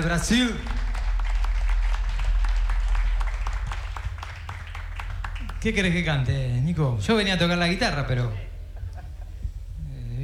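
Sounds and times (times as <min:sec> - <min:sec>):
speech: 0:00.0 - 0:00.8, 0:05.6 - 0:08.5
audience applause: 0:00.0 - 0:05.6.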